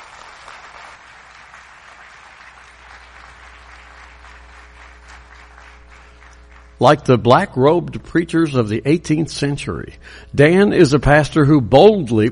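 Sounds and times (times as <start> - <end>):
church service audience applauding to welcome a pastor: 0.0 - 6.8
speech: 6.8 - 12.3.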